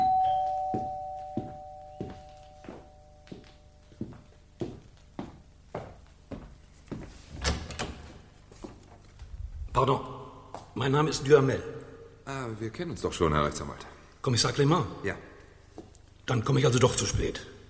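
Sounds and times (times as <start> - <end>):
doorbell chime: 0.0 - 4.0
speech: 0.7 - 0.9, 9.8 - 10.1, 10.8 - 15.3, 16.3 - 17.5
house front door being opened: 7.3 - 8.2.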